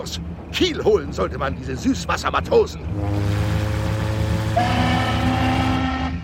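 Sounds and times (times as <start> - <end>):
speech: 0.0 - 3.5, 4.5 - 5.1
steamship horn blast: 2.8 - 6.2.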